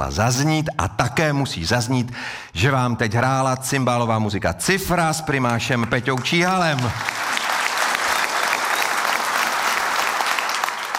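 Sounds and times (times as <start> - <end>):
speech: 0.0 - 7.3
audience applause: 5.8 - 10.9.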